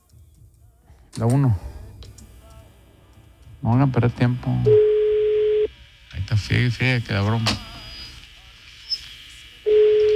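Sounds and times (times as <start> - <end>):
speech: 1.2 - 1.7, 3.6 - 4.9, 6.4 - 7.7
faint hissy phone line: 3.8 - 5.7, 6.6 - 10.1
telephone ringing tone on an outgoing call: 4.7 - 5.7, 9.7 - 10.1.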